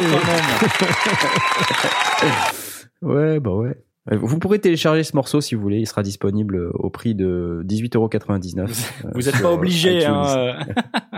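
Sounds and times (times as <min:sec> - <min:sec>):
laughter: 0:00.0 - 0:02.5, 0:09.3 - 0:11.1
applause: 0:00.0 - 0:02.6
speech: 0:00.0 - 0:11.1.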